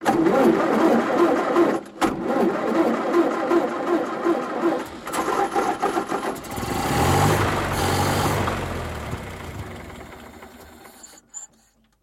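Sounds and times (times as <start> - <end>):
car starter: 0.0 - 12.0.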